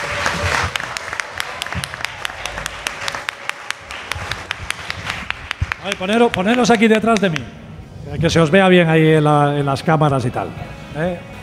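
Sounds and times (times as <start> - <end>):
audience applause: 0.0 - 7.5
speech: 5.9 - 11.3.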